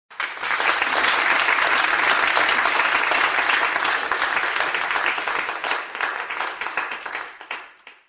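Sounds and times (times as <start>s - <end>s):
crowd applause: 0.1s - 8.0s.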